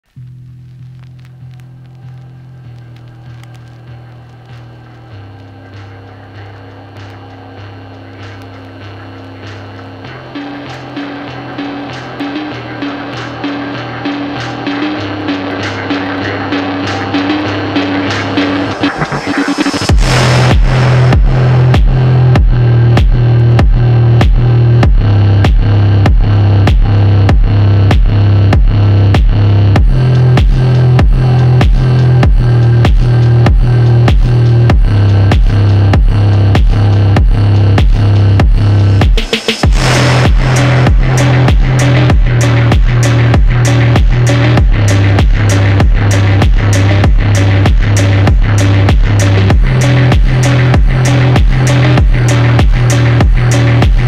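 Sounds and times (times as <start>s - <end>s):
slowed phonk music: 0.0s - 54.0s.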